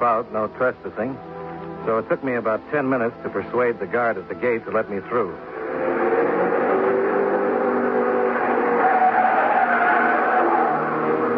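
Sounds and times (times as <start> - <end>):
speech: 0.0 - 6.0
test cars thundering past on track: 5.4 - 11.3.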